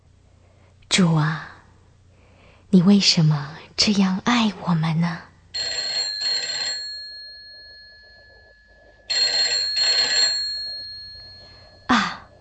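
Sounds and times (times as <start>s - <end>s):
speech: 1.0s - 1.5s, 2.7s - 5.3s
telephone ringing with metallic bell tone: 5.6s - 12.3s.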